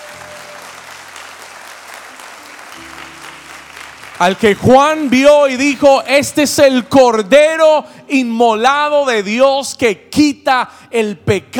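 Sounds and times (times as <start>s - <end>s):
audience clapping: 0.0s - 6.6s
speech: 4.2s - 11.5s.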